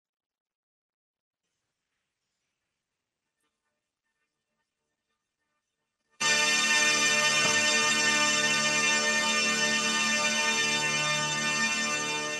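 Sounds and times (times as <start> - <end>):
cinema sound effect chord: 6.2 - 12.3.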